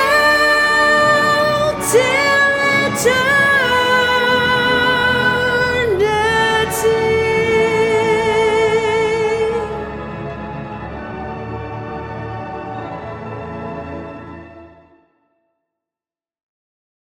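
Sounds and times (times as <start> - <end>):
school hymn vocals: 0.0 - 10.1.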